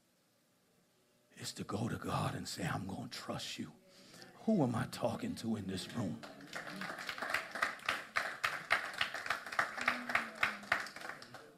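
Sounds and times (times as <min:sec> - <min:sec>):
speech: 0:01.4 - 0:03.8, 0:04.4 - 0:07.0
audience clapping: 0:05.8 - 0:11.5.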